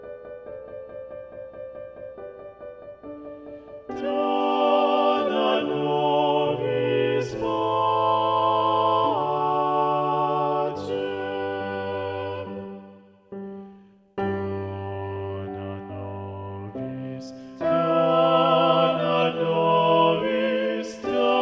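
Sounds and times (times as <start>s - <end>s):
sacred mass music: 3.9s - 13.1s, 14.4s - 21.4s.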